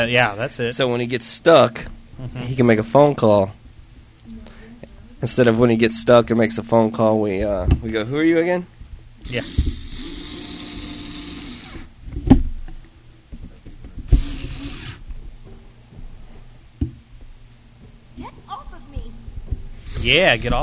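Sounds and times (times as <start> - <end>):
speech: 0.0 - 3.6, 5.2 - 9.8, 20.0 - 20.6
Blu-ray player disc drive whirring: 1.2 - 15.6.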